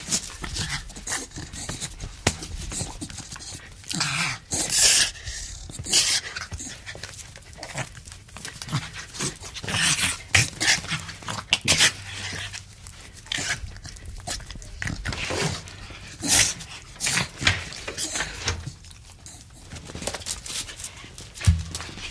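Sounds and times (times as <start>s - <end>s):
pit bull panting: 0.0s - 22.0s.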